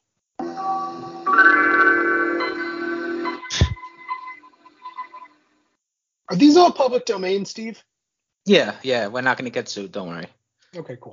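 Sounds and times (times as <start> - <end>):
Windows 95 startup chime with layered synth chords: 0.4 - 5.4
speech: 6.3 - 7.9, 8.5 - 11.1.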